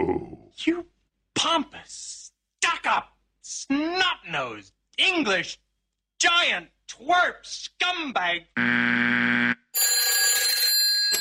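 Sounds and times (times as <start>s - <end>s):
speech: 0.5s - 5.6s, 6.2s - 9.9s
electronic telephone ring from a cold caller: 8.6s - 11.1s.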